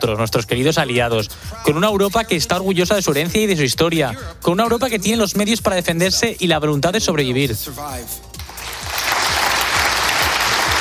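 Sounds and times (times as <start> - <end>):
speech: 0.0 - 8.4
standing ovation applause: 8.4 - 10.8.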